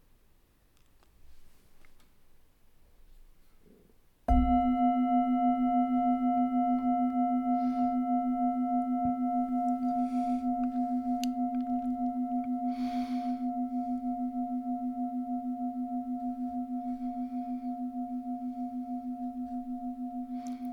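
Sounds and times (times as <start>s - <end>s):
meditation gong: 4.3s - 20.7s.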